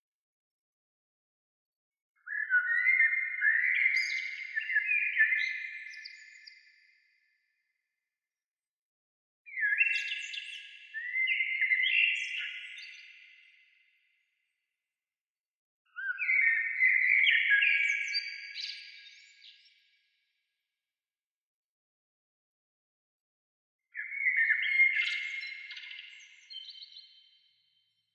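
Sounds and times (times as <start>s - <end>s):
bird singing twittering phrases: 2.2s - 6.7s, 9.5s - 13.4s, 16.0s - 19.7s, 23.9s - 27.3s.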